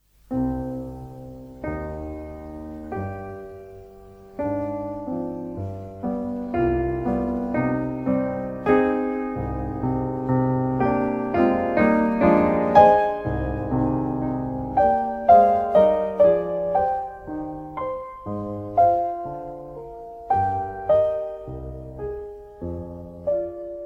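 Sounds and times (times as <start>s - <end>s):
piano piece andante: 0.0s - 23.8s.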